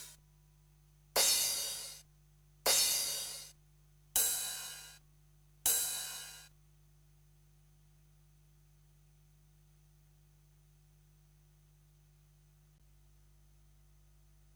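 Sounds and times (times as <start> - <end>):
drum machine kit: 1.2 - 2.0, 2.7 - 3.5, 4.2 - 5.0, 5.7 - 6.5.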